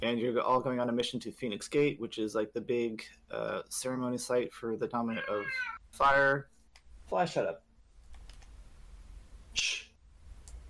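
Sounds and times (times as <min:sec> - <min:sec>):
speech: 0:00.0 - 0:06.5, 0:07.1 - 0:07.6, 0:09.6 - 0:09.9
cat meowing: 0:05.1 - 0:05.8.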